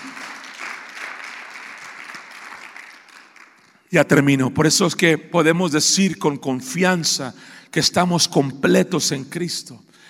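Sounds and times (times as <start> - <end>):
audience applause: 0.0 - 3.7
speech: 3.9 - 10.0.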